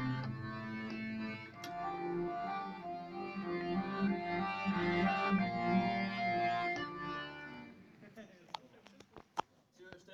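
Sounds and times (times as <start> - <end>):
cello: 0.0 - 7.1.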